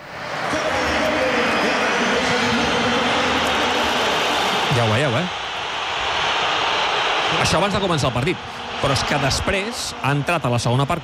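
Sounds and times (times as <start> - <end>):
stadium crowd whistling at a player: 0.0 - 11.0
speech: 7.5 - 11.0.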